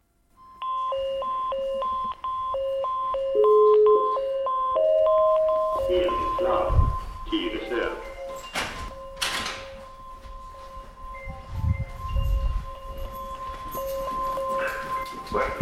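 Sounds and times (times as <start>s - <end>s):
fire station alarm going off: 0.4s - 15.6s.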